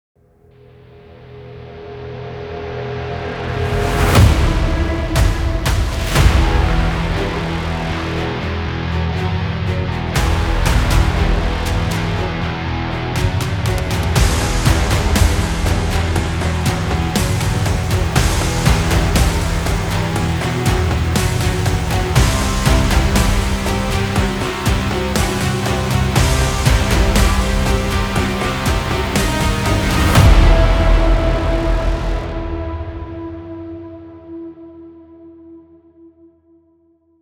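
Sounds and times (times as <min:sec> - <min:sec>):
tense action music: 0:00.5 - 0:34.2.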